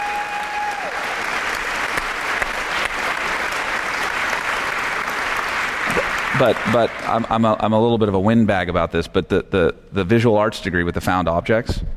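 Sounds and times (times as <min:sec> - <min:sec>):
audience applause: 0:00.0 - 0:07.5
speech: 0:06.4 - 0:11.9.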